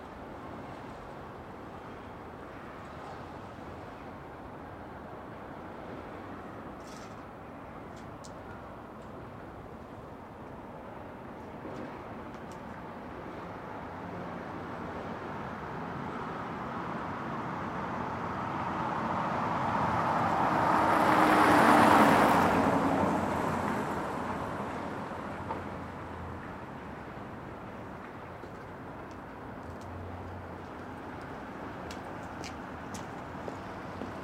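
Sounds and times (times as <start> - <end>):
light traffic cars passing by in a small town: 11.8 - 34.2.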